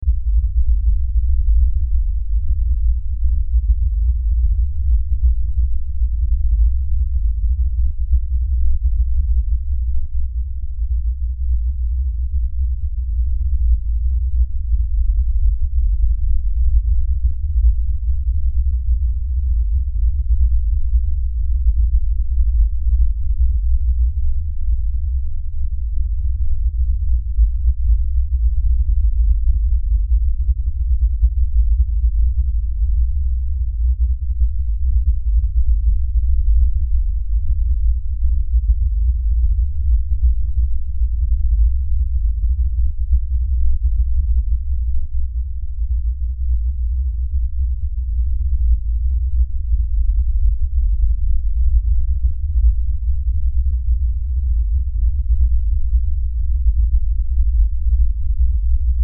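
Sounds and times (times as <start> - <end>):
LFE low bass rumble drone: 0.0 - 59.0.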